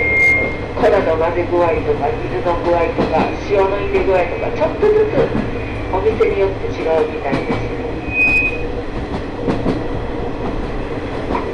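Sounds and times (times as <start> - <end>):
high metallic squeal of train: 0.0 - 0.6, 8.0 - 8.7
sightseeing trolley train rumbling on rails: 0.0 - 11.5
speech: 0.8 - 7.7.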